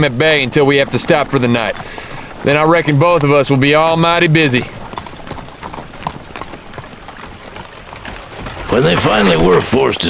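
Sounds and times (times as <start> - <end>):
speech: 0.0 - 4.8, 8.7 - 10.0
horse team hooves clip-clopping: 0.0 - 10.0.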